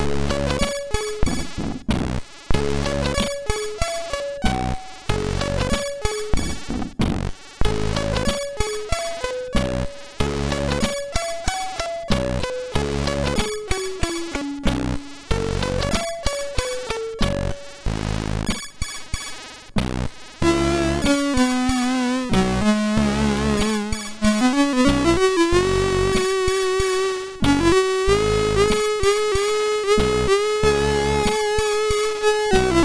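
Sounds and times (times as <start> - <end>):
MOS6581R3 SID chip game music: 0.0 - 1.6, 2.6 - 6.7, 7.6 - 32.8.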